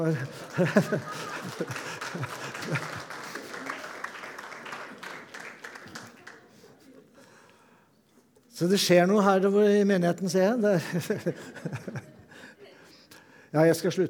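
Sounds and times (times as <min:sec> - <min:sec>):
speech: 0:00.0 - 0:03.2, 0:08.6 - 0:12.2, 0:13.5 - 0:14.0
laughter: 0:00.0 - 0:05.2, 0:10.7 - 0:12.6
audience applause: 0:00.0 - 0:06.6.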